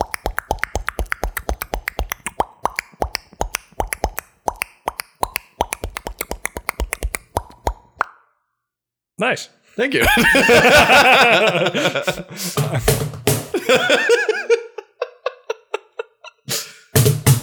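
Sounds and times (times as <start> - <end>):
beatboxing with tongue and mouth clicks: 0.0 - 8.2
speech: 9.2 - 14.0
laughter: 10.0 - 12.9, 13.5 - 16.4.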